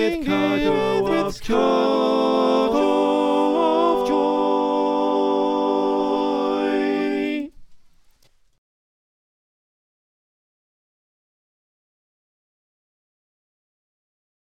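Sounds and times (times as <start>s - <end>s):
soprano alto tenor bass choir singing: 0.0s - 7.6s.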